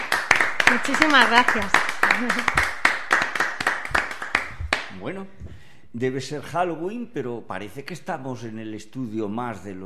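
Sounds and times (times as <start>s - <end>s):
audience applause: 0.0s - 4.9s
speech: 0.7s - 2.7s, 5.0s - 9.8s.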